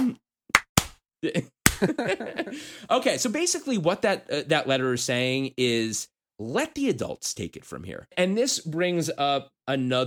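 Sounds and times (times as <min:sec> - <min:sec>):
slow hand claps: 0:00.5 - 0:01.0, 0:01.7 - 0:02.0
speech: 0:01.2 - 0:10.0.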